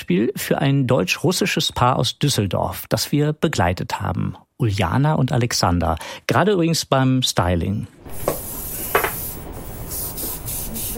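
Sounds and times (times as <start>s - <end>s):
speech: 0.1s - 8.4s
hairspray being sprayed: 8.1s - 10.9s.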